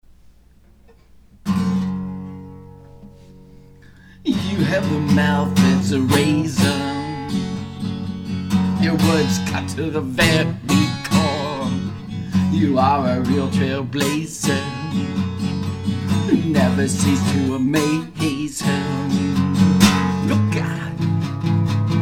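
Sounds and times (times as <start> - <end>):
country Americana music at soundcheck: 0.0 - 22.0.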